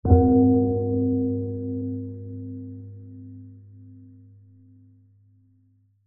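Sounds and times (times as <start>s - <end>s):
large heavy bell soft hit chime: 0.1s - 4.2s.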